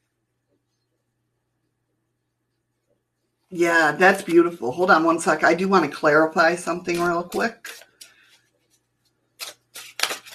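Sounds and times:
speech: 3.5s - 7.9s
tarot cards being shuffled: 6.9s - 8.8s, 9.4s - 10.3s.

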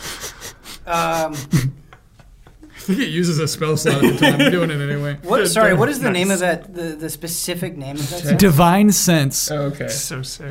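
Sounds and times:
person sniffing: 0.0s - 1.7s
speech: 0.8s - 1.8s, 2.9s - 10.5s
laughter: 2.8s - 5.2s.

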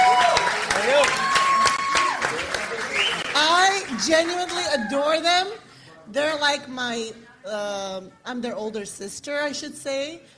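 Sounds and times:
whoops: 0.0s - 2.3s
crowd applauding: 0.0s - 5.0s
whistles: 2.9s - 3.3s
speech: 4.1s - 10.3s.

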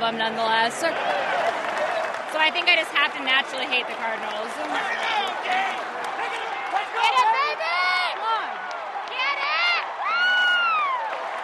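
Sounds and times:
baseball crowd noise at a Reds Cardinals game: 0.0s - 11.4s
speech: 0.1s - 5.9s
fan whooping at a Reds Cardinals baseball game: 9.4s - 11.1s.

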